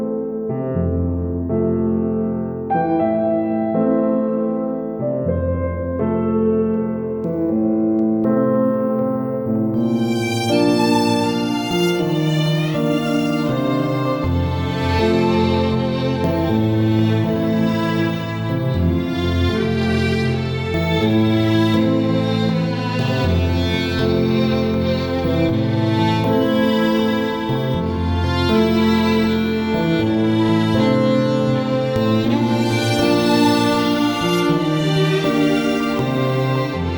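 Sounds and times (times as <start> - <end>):
introspective piano and strings music: 0.0 - 36.9.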